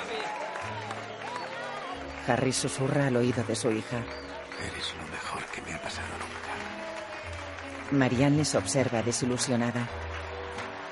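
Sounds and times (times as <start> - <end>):
half-hearted clapping: 0.0 - 10.9
speech: 2.3 - 6.3, 7.9 - 10.1.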